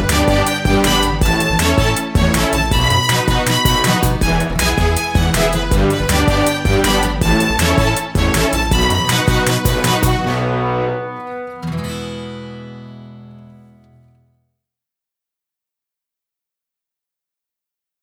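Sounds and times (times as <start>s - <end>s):
instrumental music: 0.0s - 14.1s.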